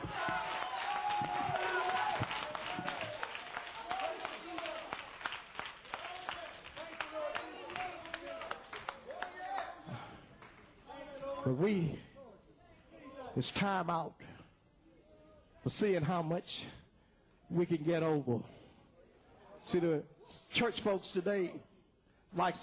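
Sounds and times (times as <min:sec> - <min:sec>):
people shouting: 0:00.0 - 0:03.2
audience clapping: 0:00.0 - 0:10.8
speech: 0:11.5 - 0:12.1, 0:13.4 - 0:14.2, 0:15.6 - 0:16.8, 0:17.5 - 0:18.6, 0:19.6 - 0:21.7, 0:22.3 - 0:22.6.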